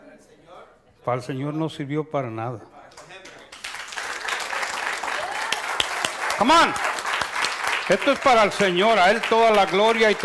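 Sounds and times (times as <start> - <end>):
speech: 1.0 - 2.8, 6.4 - 6.9, 7.9 - 10.2
audience applauding: 3.0 - 10.2.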